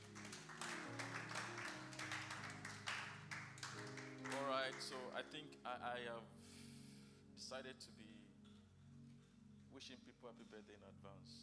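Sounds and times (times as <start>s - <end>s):
audience clapping: 0.0s - 5.3s
speech: 4.8s - 6.5s, 7.4s - 8.2s, 9.8s - 11.4s.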